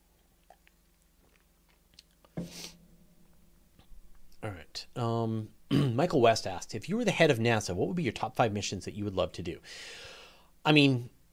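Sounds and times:
soft mouth noises: 0:00.0 - 0:02.7
person sipping water: 0:00.2 - 0:02.8
speech: 0:04.4 - 0:11.2.

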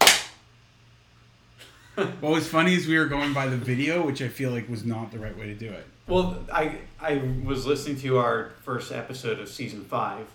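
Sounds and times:
single hand clap for recording sync: 0:00.0 - 0:00.4
speech: 0:02.0 - 0:10.3.

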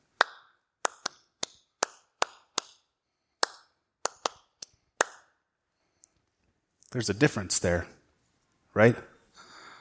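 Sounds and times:
hands clapping a steady rhythm: 0:00.0 - 0:05.5
speech: 0:06.9 - 0:08.0, 0:08.8 - 0:09.1.

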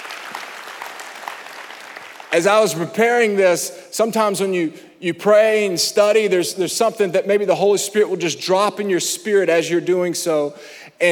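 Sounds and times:
audience clapping hands: 0:00.0 - 0:02.8
speech: 0:02.3 - 0:11.1.

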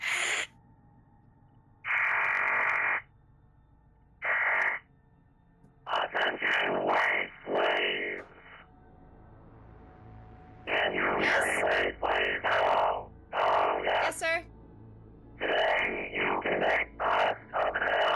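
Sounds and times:
low hum: 0:00.0 - 0:18.1
intercom crackling with static: 0:01.9 - 0:03.1, 0:04.2 - 0:04.8, 0:05.9 - 0:08.6, 0:10.7 - 0:14.4, 0:15.4 - 0:18.1.

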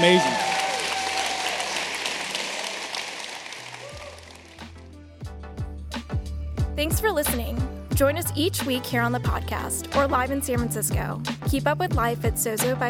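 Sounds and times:
speech: 0:00.0 - 0:00.4, 0:06.8 - 0:12.8
audience applause for panel: 0:00.0 - 0:04.7.

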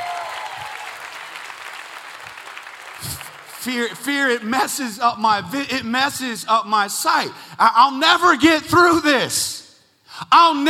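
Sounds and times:
audience applause: 0:00.0 - 0:04.5
speech: 0:03.0 - 0:09.6, 0:10.2 - 0:10.6.

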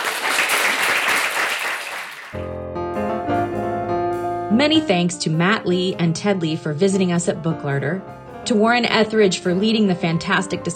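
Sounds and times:
audience applause: 0:00.0 - 0:02.4
tuneful music track: 0:02.3 - 0:10.7
speech: 0:04.6 - 0:10.7.

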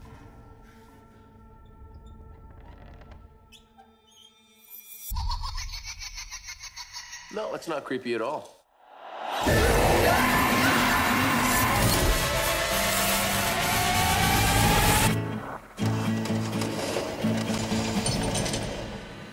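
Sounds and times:
speech: 0:07.3 - 0:08.6
rising tones: 0:08.8 - 0:15.6
grinding whirring mechanical noise in horror film Jigsaw trailer: 0:09.5 - 0:19.2.

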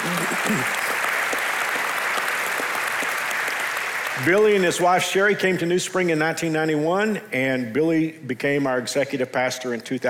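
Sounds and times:
church congregation applauding to welcome its executive pastor: 0:00.0 - 0:05.7
speech: 0:00.5 - 0:00.8, 0:04.2 - 0:10.0.

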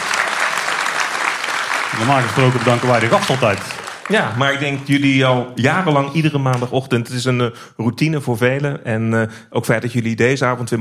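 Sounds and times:
audience applause: 0:00.0 - 0:05.2
speech: 0:02.0 - 0:10.8.

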